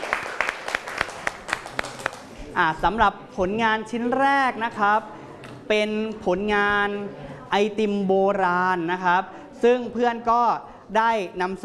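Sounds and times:
audience applause: 0:00.0 - 0:02.3
speech: 0:02.6 - 0:11.6.

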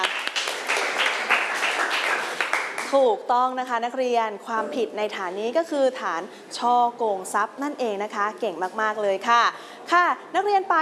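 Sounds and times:
students in a classroom clapping for a classmate: 0:00.0 - 0:03.0
speech: 0:02.9 - 0:10.7.

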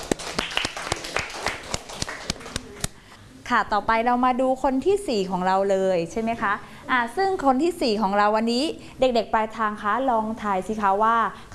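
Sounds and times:
children clapping for a classmate: 0:00.0 - 0:02.9
speech: 0:03.5 - 0:11.5.

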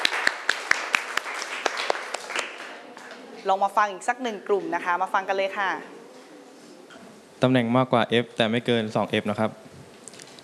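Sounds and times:
students clapping: 0:00.0 - 0:03.1
speech: 0:03.4 - 0:06.0, 0:07.4 - 0:09.6.

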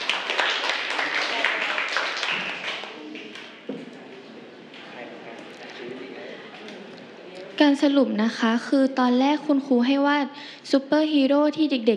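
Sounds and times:
students clapping in classroom: 0:00.0 - 0:03.5
speech: 0:07.6 - 0:11.9.

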